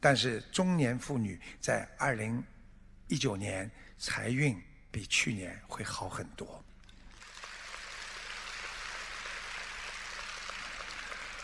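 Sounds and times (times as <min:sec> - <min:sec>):
speech: 0:00.0 - 0:02.5, 0:03.1 - 0:06.7
crowd clapping: 0:06.9 - 0:11.4.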